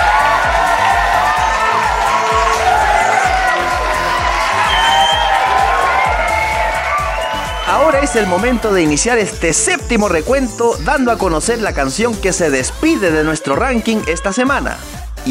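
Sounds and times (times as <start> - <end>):
applause and cheering: 0.0 - 9.5
speech: 8.1 - 15.2.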